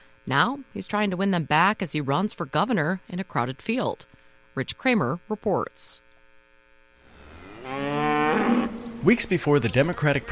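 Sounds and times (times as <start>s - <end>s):
speech: 0.3s - 6.0s, 9.0s - 10.2s
dairy cow mooing on the Riverview Dairy Farm in Chippewa County: 7.1s - 9.2s.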